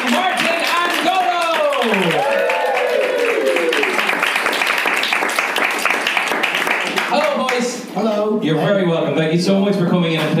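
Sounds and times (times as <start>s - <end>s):
studio audience clapping welcoming two guest comedians on a comedy game show: 0.0s - 7.9s
speech: 8.5s - 10.3s.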